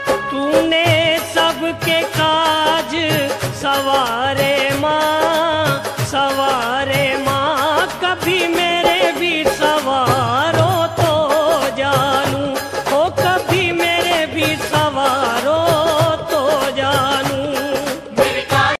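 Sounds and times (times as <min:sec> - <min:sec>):
Bhakti devotional song ringtone: 0:00.0 - 0:18.7.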